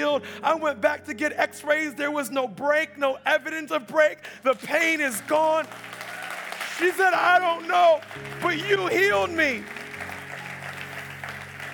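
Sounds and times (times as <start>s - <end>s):
speech: 0.0s - 6.0s, 6.8s - 9.8s
audience clapping: 4.5s - 11.7s.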